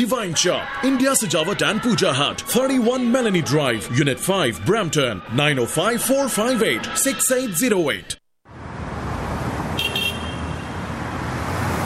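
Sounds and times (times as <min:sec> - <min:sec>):
speech: 0:00.0 - 0:08.2
stuck road traffic in the Greater Toronto Area: 0:00.0 - 0:11.8
car horn toot: 0:09.8 - 0:10.8.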